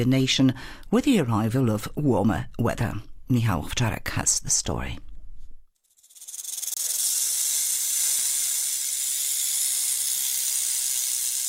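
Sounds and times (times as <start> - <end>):
speech: 0.0 - 5.1
rattlesnake rattling: 5.8 - 11.4.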